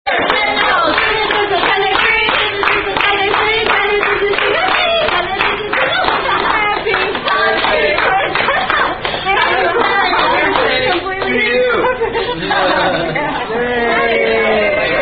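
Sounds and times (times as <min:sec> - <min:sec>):
birthday song melody: 0:00.1 - 0:15.0
laughter: 0:07.8 - 0:15.0.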